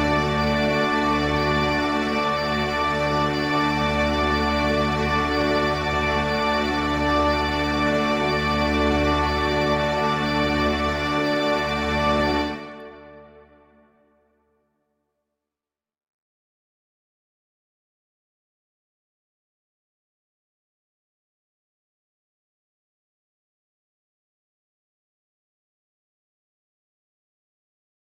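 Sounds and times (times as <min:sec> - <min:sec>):
organ playing adagio and staccato: 0:00.0 - 0:13.3.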